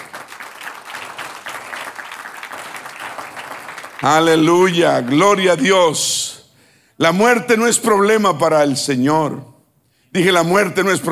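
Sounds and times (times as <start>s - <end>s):
audience applause: 0.0s - 5.7s
speech: 4.0s - 6.3s, 7.0s - 9.5s, 10.1s - 11.0s.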